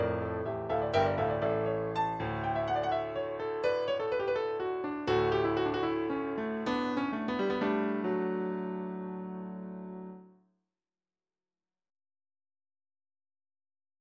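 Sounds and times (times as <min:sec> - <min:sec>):
Norwegian melody in MIDI: 0:00.0 - 0:10.2.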